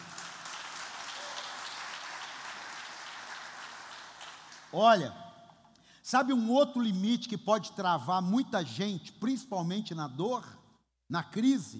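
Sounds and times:
audience applauding: 0.0s - 4.8s
speech: 4.7s - 5.2s, 6.1s - 11.7s.

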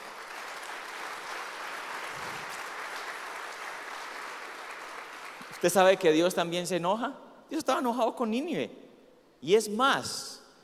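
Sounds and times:
audience applause: 0.0s - 5.6s
speech: 5.6s - 8.8s, 9.4s - 10.4s.

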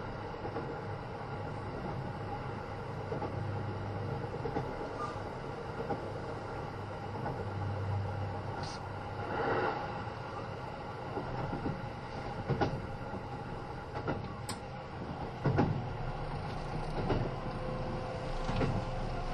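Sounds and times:
Kintetsu 80000 series Hinotori train rumble: 0.0s - 19.3s.

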